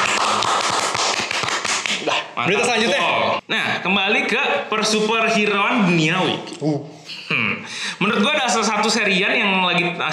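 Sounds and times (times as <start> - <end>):
applause: 0.0 - 2.0
speech: 2.4 - 10.1.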